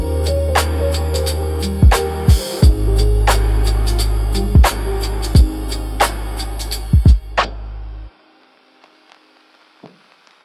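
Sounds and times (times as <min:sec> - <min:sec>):
emotional lo-fi piano music: 0:00.0 - 0:07.4.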